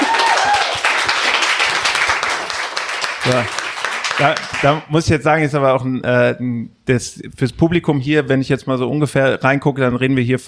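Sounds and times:
audience applause: 0:00.0 - 0:04.8
speech: 0:03.3 - 0:03.6, 0:04.2 - 0:10.4.

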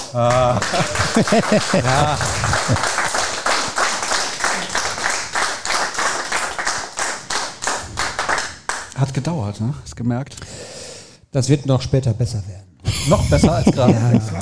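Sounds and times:
audience applause: 0:00.0 - 0:08.9
speech: 0:00.1 - 0:03.0, 0:09.0 - 0:10.7, 0:11.3 - 0:14.3
laughter: 0:00.2 - 0:03.2, 0:12.9 - 0:14.3.

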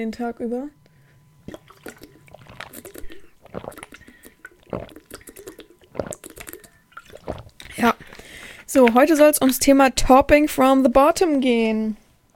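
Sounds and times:
speech: 0:00.0 - 0:00.8, 0:08.7 - 0:12.0
person gulping a big sip of water: 0:01.4 - 0:09.6.

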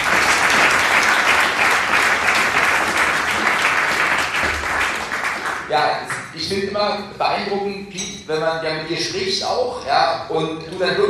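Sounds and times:
audience applause: 0:00.0 - 0:05.8
speech: 0:05.9 - 0:11.0.

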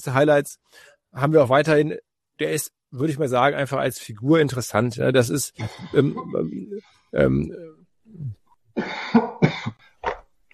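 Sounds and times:
speech: 0:00.0 - 0:09.8
person coughing: 0:08.8 - 0:09.8.

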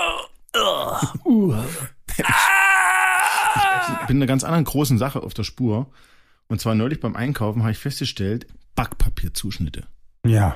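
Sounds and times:
voice imitating stifled loud screams of old computer games: 0:00.0 - 0:01.1, 0:02.2 - 0:04.1
speech: 0:00.8 - 0:02.4, 0:04.1 - 0:10.5.

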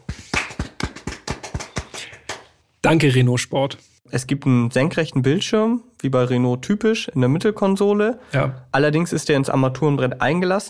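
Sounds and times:
small applause: 0:00.0 - 0:02.5
speech: 0:02.9 - 0:10.6.

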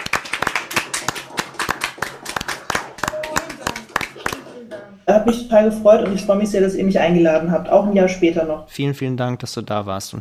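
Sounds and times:
audience applause: 0:00.0 - 0:04.7
speech: 0:05.1 - 0:10.2.

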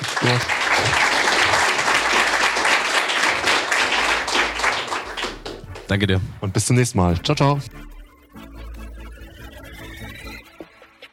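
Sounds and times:
audience applauding: 0:00.0 - 0:06.0
speech: 0:00.2 - 0:01.2, 0:05.9 - 0:07.9.

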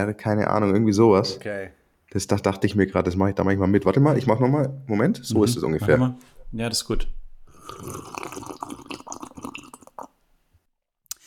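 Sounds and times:
speech: 0:00.0 - 0:08.8
slurping sip of sage tea: 0:07.5 - 0:10.2.

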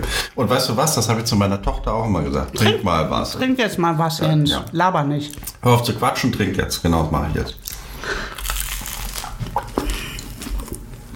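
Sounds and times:
speech: 0:00.4 - 0:08.2
biting into a bread roll: 0:07.6 - 0:10.9.

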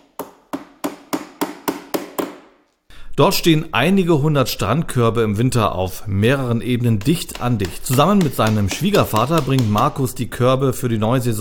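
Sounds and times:
hammering in a beach chair workshop: 0:00.0 - 0:02.5, 0:06.8 - 0:10.1
speech: 0:03.2 - 0:11.3.

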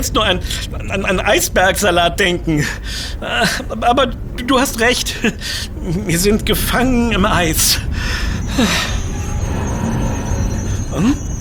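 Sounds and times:
speech: 0:00.0 - 0:09.0, 0:11.0 - 0:11.3
low rumble: 0:00.0 - 0:11.4
train brakes squealing: 0:06.5 - 0:11.4.

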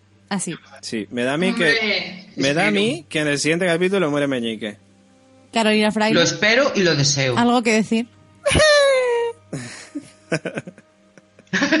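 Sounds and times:
speech: 0:00.3 - 0:04.8, 0:05.5 - 0:08.7, 0:09.5 - 0:10.8
person wailing and sobbing: 0:08.4 - 0:10.8
laughter: 0:08.5 - 0:11.7.

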